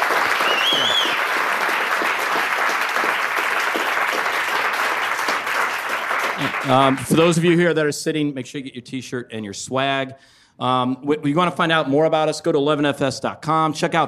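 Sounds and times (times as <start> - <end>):
audience applause: 0.0 - 7.3
whistle or cheer: 0.3 - 1.4
speech: 6.6 - 14.0.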